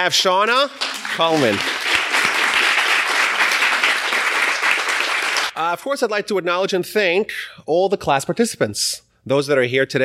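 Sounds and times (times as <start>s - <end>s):
speech: 0.0s - 1.8s, 5.6s - 10.0s
round of applause: 0.3s - 5.6s.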